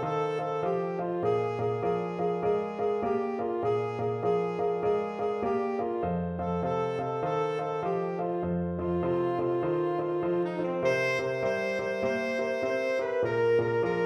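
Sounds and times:
tenor saxophone: 0:00.0 - 0:14.0.

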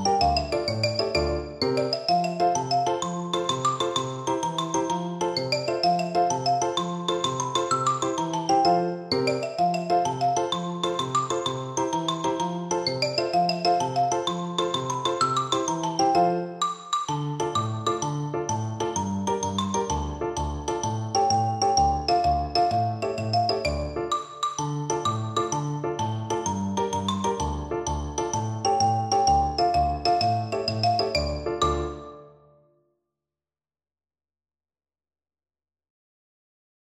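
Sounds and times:
tarantella on xylophone: 0:00.0 - 0:32.2.

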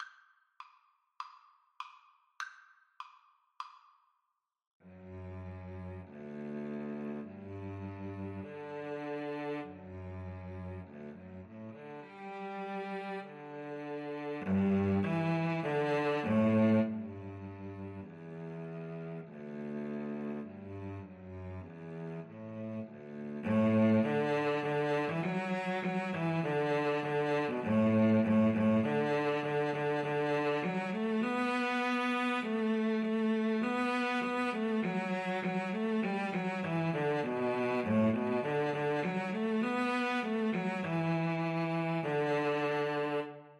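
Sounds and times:
cello duet: 0:04.9 - 0:43.5.

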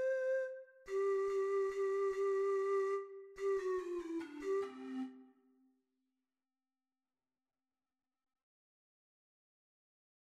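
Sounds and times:
four-hole ocarina melody: 0:00.0 - 0:05.5.

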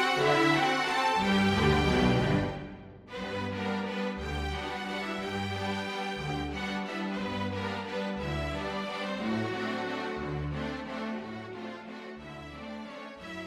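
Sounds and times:
string ensemble playing a waltz: 0:00.0 - 0:13.4.

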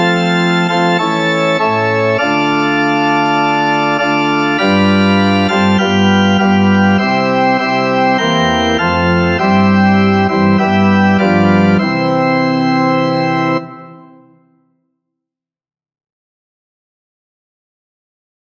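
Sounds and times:
organ: 0:00.0 - 0:14.6.

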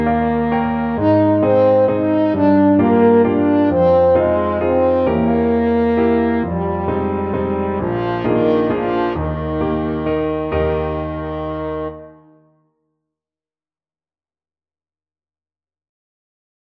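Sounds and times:
french horn melody: 0:00.0 - 0:12.6.

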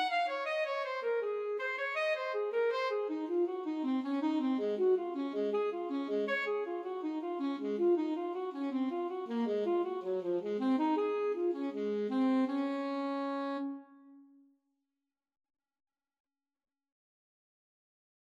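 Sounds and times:
alto saxophone playing a bourree: 0:00.0 - 0:14.2.

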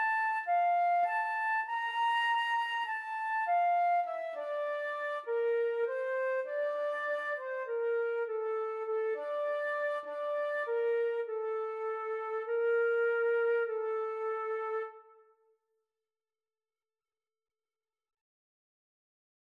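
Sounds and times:
flute duet: 0:00.0 - 0:15.3.

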